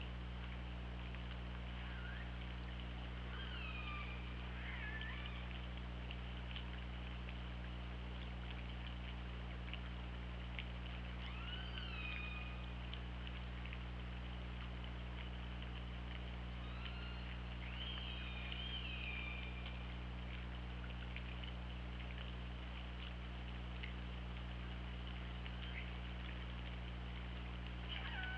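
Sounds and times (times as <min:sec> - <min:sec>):
steady low hum: 0:00.0 - 0:28.3
orca calls: 0:01.8 - 0:02.4, 0:03.3 - 0:05.6, 0:11.2 - 0:12.7, 0:16.6 - 0:19.6, 0:27.9 - 0:28.3.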